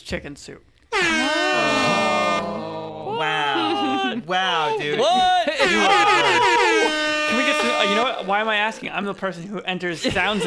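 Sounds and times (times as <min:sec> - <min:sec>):
speech: 0:00.1 - 0:01.9, 0:04.1 - 0:10.4
hip hop air horn sound effect blasts: 0:00.9 - 0:02.7, 0:05.6 - 0:08.9
laughter: 0:01.4 - 0:09.2, 0:09.9 - 0:10.4.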